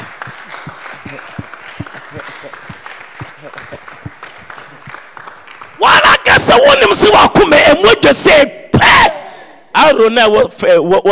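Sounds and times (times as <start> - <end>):
laughter: 0.0 - 5.1
several people clapping: 0.0 - 6.7
speech: 6.5 - 9.2, 9.8 - 11.1.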